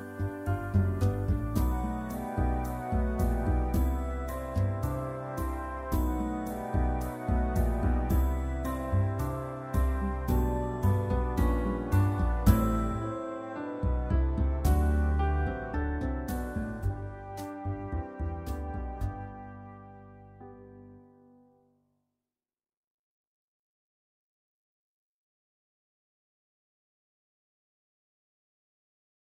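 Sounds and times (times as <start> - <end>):
mellow backing track: 0.0 - 21.3.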